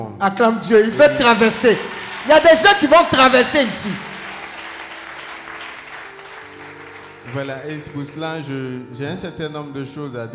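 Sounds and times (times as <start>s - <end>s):
speech: 0.0s - 4.1s, 7.3s - 10.3s
church congregation clapping: 0.8s - 8.4s.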